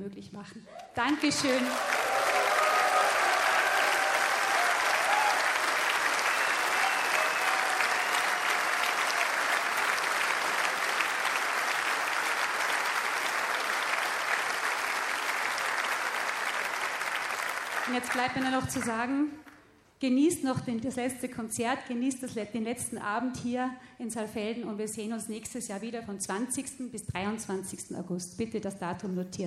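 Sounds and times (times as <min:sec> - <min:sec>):
speech: 0:00.0 - 0:02.4, 0:17.9 - 0:29.4
audience applause at a festival final evening in Saalfelden: 0:00.8 - 0:18.9.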